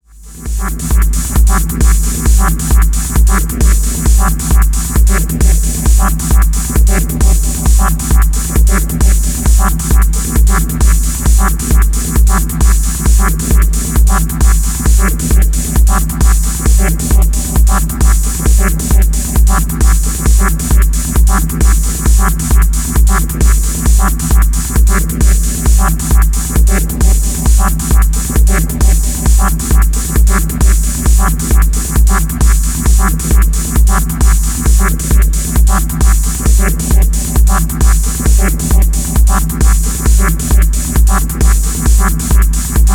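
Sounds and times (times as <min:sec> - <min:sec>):
locked groove loop: 0:00.3 - 0:42.9.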